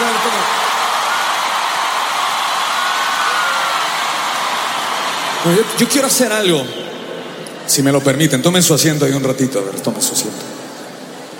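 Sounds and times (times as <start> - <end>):
large crowd applauding: 0.0 - 6.8
speech: 5.4 - 6.9, 7.7 - 10.5.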